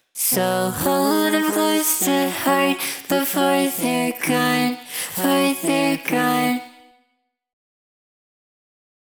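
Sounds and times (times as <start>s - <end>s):
a cappella singing: 0.1s - 7.0s.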